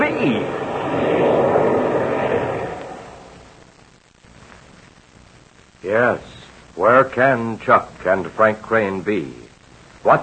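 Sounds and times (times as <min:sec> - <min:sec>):
airplane engine drone throttling down to land: 0:00.0 - 0:03.8
speech: 0:00.2 - 0:01.0, 0:05.9 - 0:09.4, 0:10.0 - 0:10.2.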